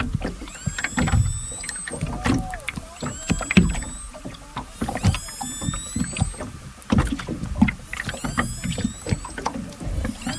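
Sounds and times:
water knocking and rumbling: 0:00.0 - 0:10.3
orca distress cries: 0:00.4 - 0:06.5, 0:08.1 - 0:09.4, 0:10.1 - 0:10.3.

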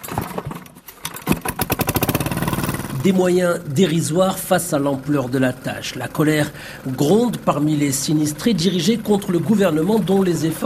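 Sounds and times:
diesel-fuelled motor pump for draining floodwater starting: 0:00.0 - 0:10.6
speech: 0:03.0 - 0:10.6.

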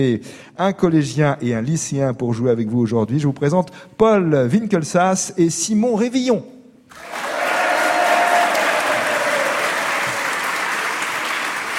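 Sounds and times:
speech: 0:00.0 - 0:07.2
audience applause: 0:06.9 - 0:11.7.

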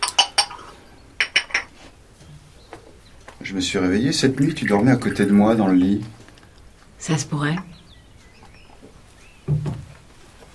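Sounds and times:
ceramic coffee cup and metal cutlery being set out: 0:00.0 - 0:01.7
speech: 0:03.5 - 0:06.2, 0:07.1 - 0:07.8.

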